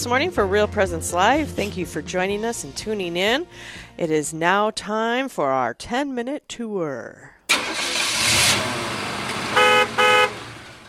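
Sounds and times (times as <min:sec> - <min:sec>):
speech: 0:00.0 - 0:07.3
car engine starting and idling: 0:07.5 - 0:10.8
car horn honks: 0:09.4 - 0:10.8.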